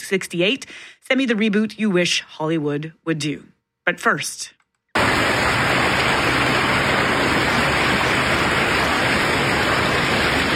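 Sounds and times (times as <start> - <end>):
speech: 0.1 - 5.4
floodwater rushing through the streets of Minnetonka and over highways: 5.0 - 10.5.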